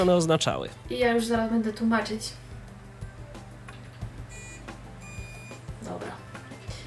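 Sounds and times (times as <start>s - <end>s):
speech: 0.0s - 2.4s
battery tester electronic beeps: 4.3s - 5.6s.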